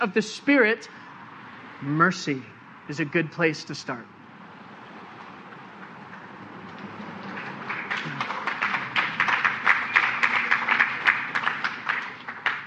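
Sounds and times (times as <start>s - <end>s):
speech: 0.0s - 1.0s, 1.8s - 4.1s
audience clapping during a sermon: 5.5s - 12.6s.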